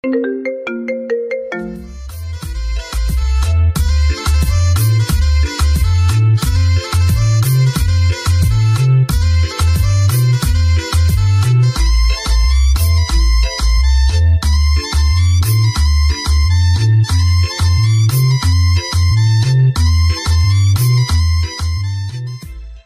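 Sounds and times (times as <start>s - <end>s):
marimba remix: 0.0s - 22.8s.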